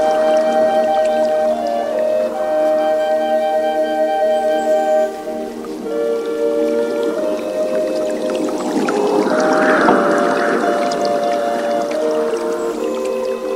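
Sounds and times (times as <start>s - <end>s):
wooden flute and pan flute tones: 0.0s - 13.5s
breathy airy swell: 4.8s - 13.5s.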